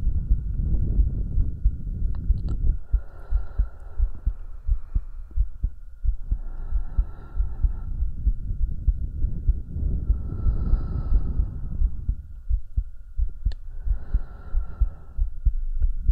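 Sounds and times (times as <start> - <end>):
heartbeat thumping: 0.0 - 16.1
breathing: 2.8 - 5.6, 6.2 - 8.2, 9.9 - 12.2, 13.6 - 15.6.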